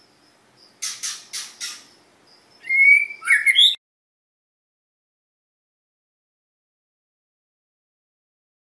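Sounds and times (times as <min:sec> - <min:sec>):
chich choe bird singing: 0:00.0 - 0:03.8.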